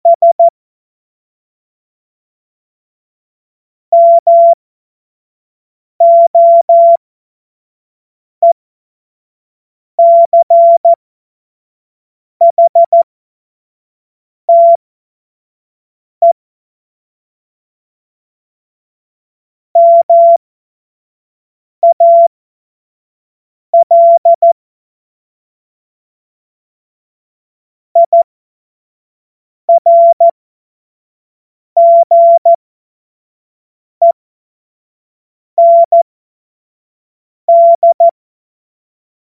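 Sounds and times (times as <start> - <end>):
CW Morse code beeps: 0.1 - 0.5, 3.9 - 4.6, 6.0 - 7.0, 10.0 - 11.0, 12.4 - 13.1, 14.5 - 14.8, 19.8 - 20.4, 21.8 - 22.3, 23.8 - 24.6, 28.0 - 28.2, 29.7 - 30.3, 31.8 - 32.6, 35.6 - 36.0, 37.5 - 38.2.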